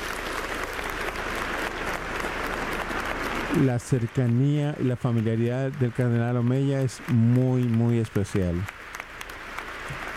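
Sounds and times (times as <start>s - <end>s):
audience applause: 0.0s - 10.1s
speech: 3.6s - 8.8s.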